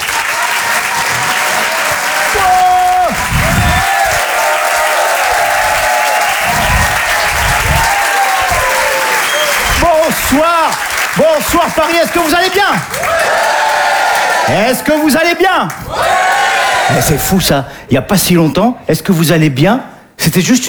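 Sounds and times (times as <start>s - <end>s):
comedy club audience clapping in Paris: 0.0s - 17.3s
speech: 10.3s - 13.2s, 14.5s - 16.1s, 16.9s - 20.6s.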